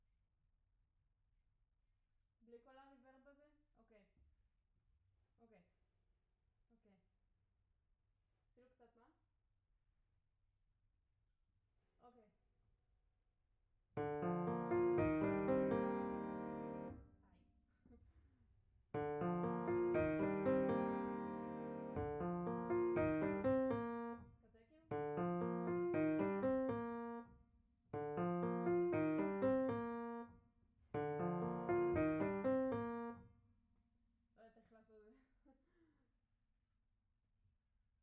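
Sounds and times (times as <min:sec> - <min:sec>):
piano note B: 0:14.0 - 0:17.0, 0:19.0 - 0:24.2, 0:24.9 - 0:27.3, 0:28.0 - 0:30.3, 0:31.0 - 0:33.2.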